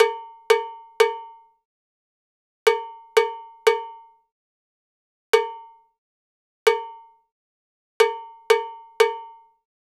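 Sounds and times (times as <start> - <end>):
Latin Percussion cowbell: 0.0 - 1.6, 2.7 - 4.3, 5.4 - 6.0, 6.7 - 7.3, 8.0 - 9.7.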